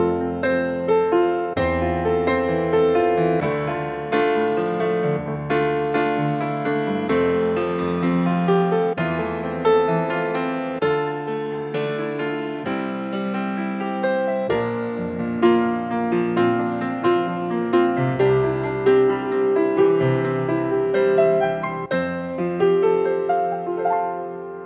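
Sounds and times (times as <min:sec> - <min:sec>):
acoustic solo pop piano in F: 0:00.0 - 0:24.6.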